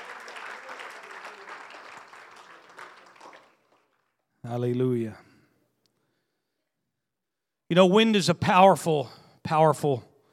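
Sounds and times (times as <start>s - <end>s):
audience clapping: 0.0s - 4.3s
speech: 4.4s - 5.3s, 7.7s - 10.1s.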